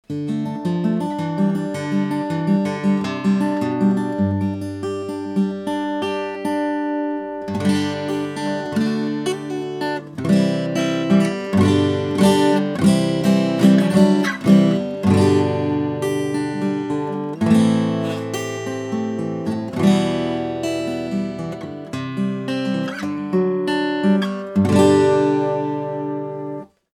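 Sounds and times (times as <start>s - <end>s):
western guitar recording sample: 0.0s - 26.9s.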